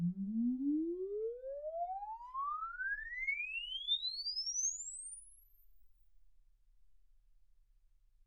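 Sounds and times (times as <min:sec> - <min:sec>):
exponential sine sweep from 10 Hz to 24 kHz: 0:00.2 - 0:05.7.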